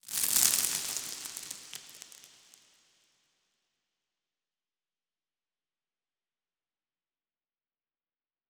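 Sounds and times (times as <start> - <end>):
rock debris in environment: 0.0 - 3.0.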